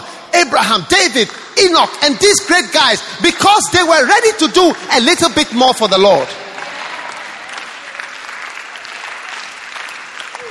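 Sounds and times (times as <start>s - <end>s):
speech: 0.5s - 6.4s
audience clapping: 5.7s - 10.4s.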